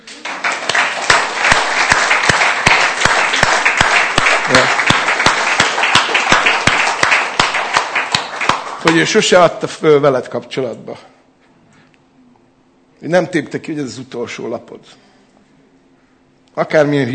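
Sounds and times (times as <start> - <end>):
audience applause: 0.0 - 9.3
speech: 8.9 - 11.2, 13.0 - 15.1, 16.6 - 17.1.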